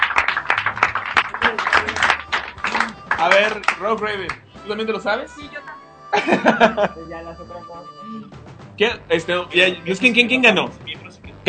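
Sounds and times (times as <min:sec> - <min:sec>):
applause: 0:00.0 - 0:04.4
speech: 0:03.2 - 0:11.4
laughter: 0:06.2 - 0:07.1.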